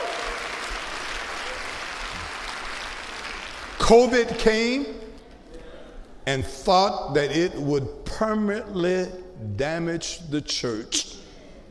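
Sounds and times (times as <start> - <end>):
audience clapping hands: 0.0 - 3.9
speech: 3.9 - 5.0, 6.3 - 11.2.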